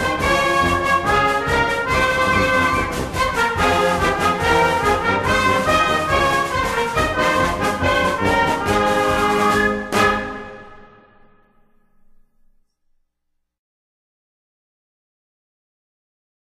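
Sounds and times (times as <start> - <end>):
song: 0.0 - 12.1.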